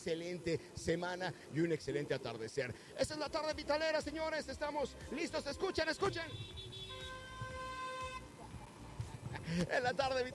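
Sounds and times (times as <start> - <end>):
speech: 0.0 - 6.7, 9.5 - 10.3
car horn honking: 5.6 - 8.4.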